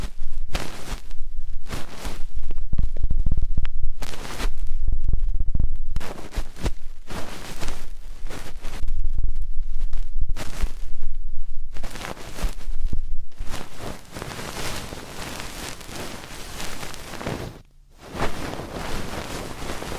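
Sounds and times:
low thumps: 0.0 - 14.0
ear cleaning rustling and scratching: 0.0 - 19.9.

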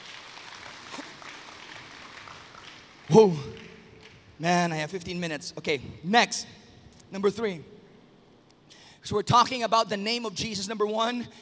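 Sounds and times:
church congregation clapping in praise of God: 0.0 - 5.2
speech: 3.1 - 3.5, 4.4 - 7.7, 9.0 - 11.3.

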